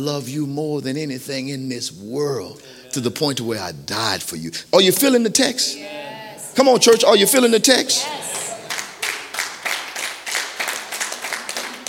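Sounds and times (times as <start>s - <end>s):
speech: 0.0s - 6.0s, 6.6s - 8.3s
audience clapping: 8.0s - 11.8s.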